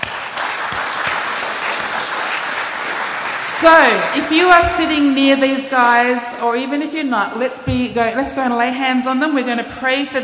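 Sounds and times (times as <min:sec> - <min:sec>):
audience clapping: 0:00.0 - 0:04.6
speech: 0:03.6 - 0:10.2.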